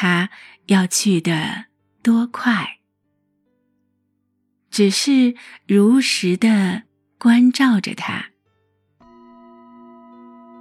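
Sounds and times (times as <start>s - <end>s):
speech: 0.0s - 2.8s, 4.7s - 8.3s
meditation bell ringing: 9.0s - 10.5s.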